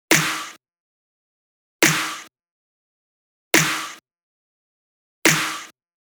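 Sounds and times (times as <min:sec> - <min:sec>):
snare drum: 0:00.1 - 0:00.6, 0:01.8 - 0:02.3, 0:03.6 - 0:04.0, 0:05.3 - 0:05.7.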